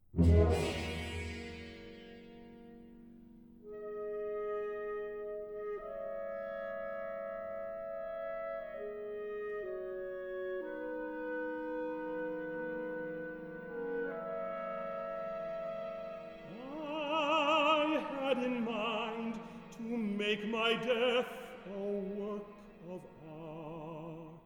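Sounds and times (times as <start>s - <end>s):
orchestra: 0.0s - 24.4s
baritone singing: 16.4s - 24.4s.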